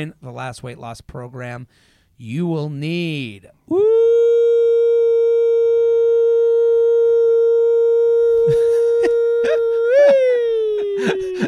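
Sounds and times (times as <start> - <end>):
speech: 0.0 - 4.1, 8.4 - 8.7, 11.0 - 11.4
voice imitating a tornado siren: 3.7 - 11.4
laughter: 8.4 - 11.4.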